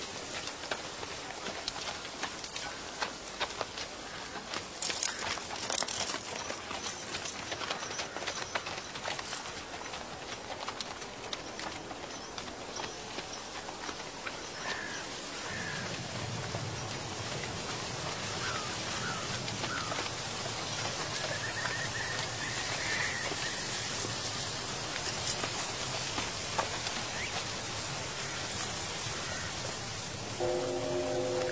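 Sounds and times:
dry fallen leaves rustling: 0:00.0 - 0:31.5
horse hooves clopping: 0:00.0 - 0:31.5
old temple bell ringing tone: 0:30.4 - 0:31.5.

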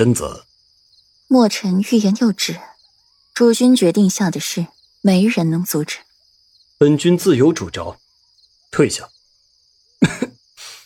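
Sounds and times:
speech: 0:00.0 - 0:00.5, 0:01.3 - 0:02.7, 0:03.4 - 0:06.1, 0:06.8 - 0:08.0, 0:08.7 - 0:09.2
person coughing: 0:10.0 - 0:10.4.

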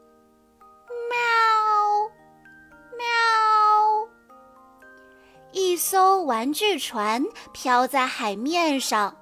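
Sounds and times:
kitten meowing for help: 0:00.9 - 0:02.1, 0:03.0 - 0:04.1
speech: 0:05.8 - 0:09.2.

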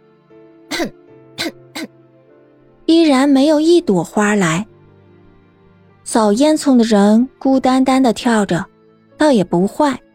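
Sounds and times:
throaty coughs: 0:00.7 - 0:02.0
speech: 0:00.8 - 0:01.0, 0:02.9 - 0:04.7, 0:06.1 - 0:10.0.

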